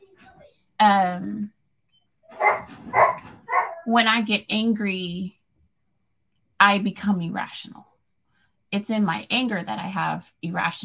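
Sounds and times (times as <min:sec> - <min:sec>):
speech: 0:00.8 - 0:01.6, 0:03.9 - 0:05.4, 0:06.6 - 0:07.9, 0:08.7 - 0:10.8
dogs barking: 0:02.3 - 0:03.9.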